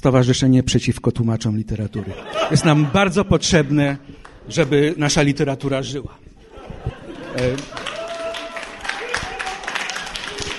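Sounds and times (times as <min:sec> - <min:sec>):
speech: 0:00.0 - 0:06.2, 0:07.4 - 0:07.9
laughter: 0:01.9 - 0:04.0, 0:06.4 - 0:08.4
audience applause: 0:07.0 - 0:10.5.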